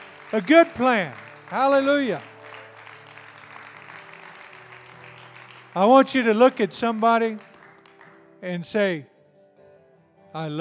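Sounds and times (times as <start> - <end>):
audience applause: 0.0 - 8.2
speech: 0.3 - 2.3, 5.8 - 7.5, 8.4 - 9.1, 10.3 - 10.5.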